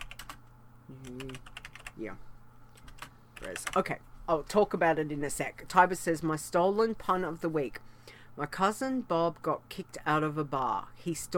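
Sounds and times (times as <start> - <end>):
typing a note on a computer keyboard: 0.0 - 2.0, 2.7 - 4.0
speech: 0.9 - 2.3, 3.4 - 11.3.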